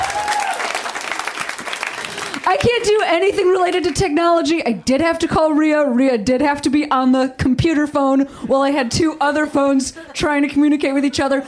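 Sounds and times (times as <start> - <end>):
applause: 0.0 - 3.0
speech: 2.4 - 11.4.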